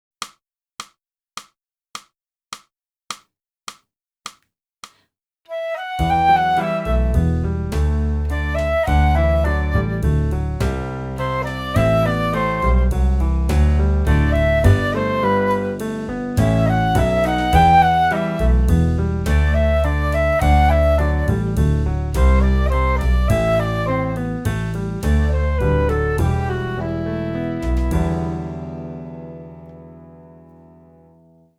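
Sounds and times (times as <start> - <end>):
flute: 5.5 - 29.0.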